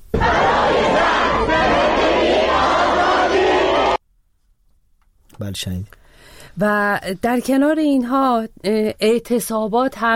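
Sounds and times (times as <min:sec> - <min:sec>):
students chanting slogans at a rally at the University of Qom: 0:00.1 - 0:04.0
speech: 0:05.4 - 0:06.0, 0:06.6 - 0:10.1.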